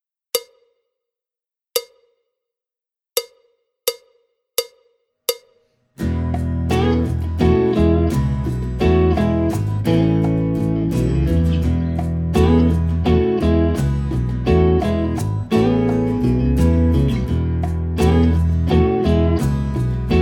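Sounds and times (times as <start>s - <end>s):
backing track music: 6.0s - 20.2s.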